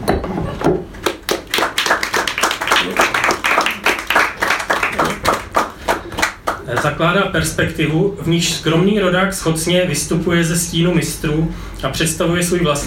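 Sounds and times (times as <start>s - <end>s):
applause: 1.0s - 6.9s
speech: 6.8s - 12.8s.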